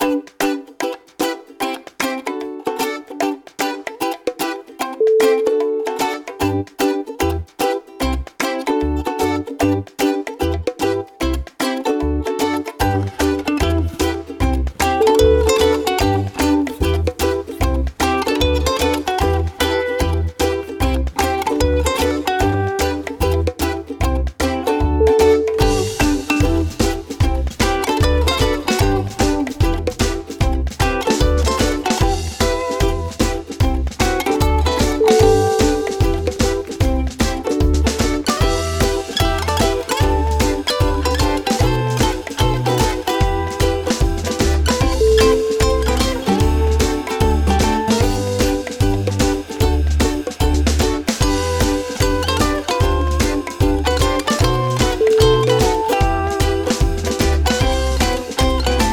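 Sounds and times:
ukulele: 0.0 - 58.9.

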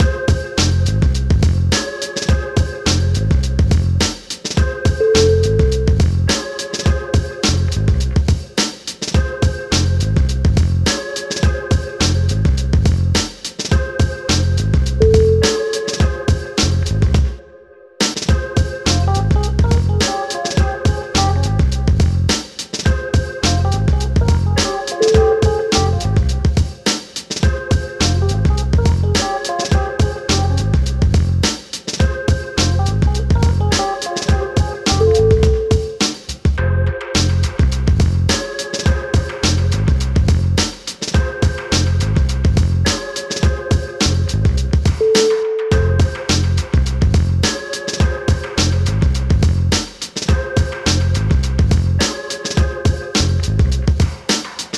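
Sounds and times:
trip hop music: 0.0 - 17.4, 18.0 - 54.7.

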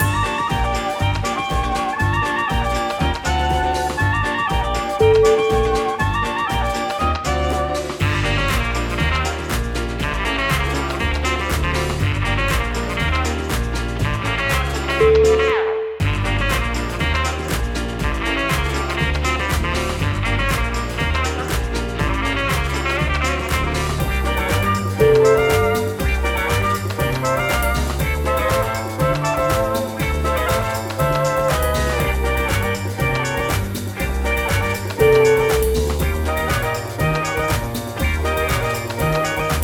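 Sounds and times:
swing music: 0.0 - 39.6.

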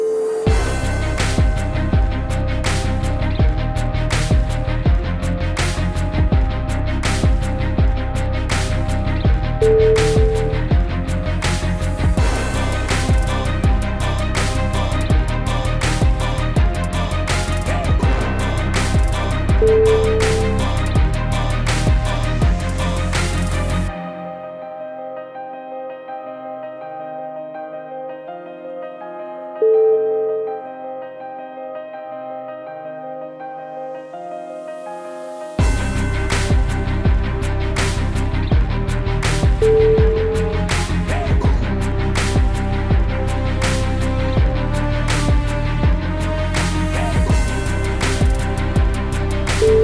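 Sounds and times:
epic hip hop music: 0.1 - 25.5, 35.6 - 49.8.

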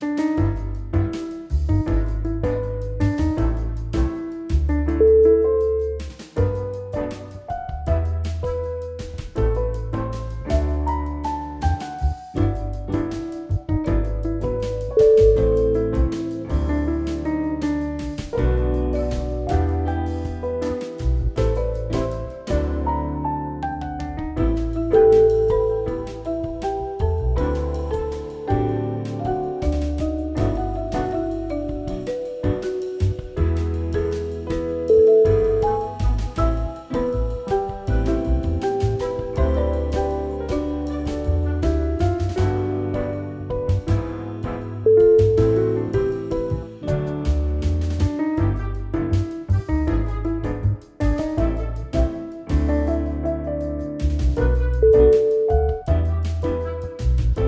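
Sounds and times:
jazz music: 0.0 - 57.4.

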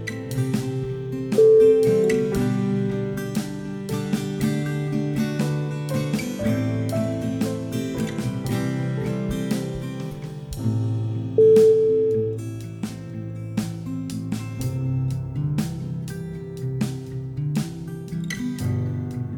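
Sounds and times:
sad acoustic indie music: 0.0 - 19.3.

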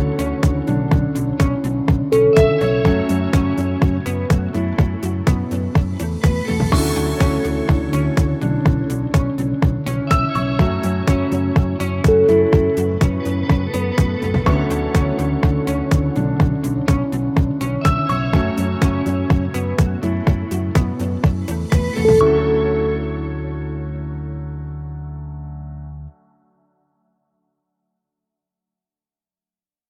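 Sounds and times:
indie guitar music: 0.0 - 26.2.

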